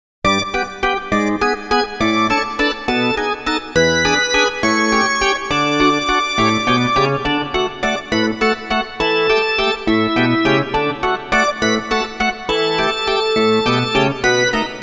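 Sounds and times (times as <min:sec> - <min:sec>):
ballpark organ tune: 0:00.3 - 0:14.8.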